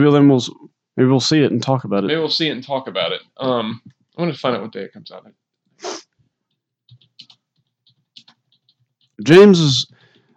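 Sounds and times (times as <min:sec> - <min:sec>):
speech: 0:00.0 - 0:06.0, 0:09.2 - 0:10.0
typing on a computer keyboard: 0:06.9 - 0:09.2.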